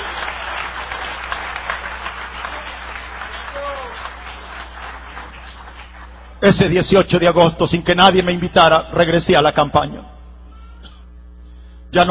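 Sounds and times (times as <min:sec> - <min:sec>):
church congregation applauding during an evangelical testimony service: 0:00.0 - 0:06.8
speech: 0:06.4 - 0:10.1.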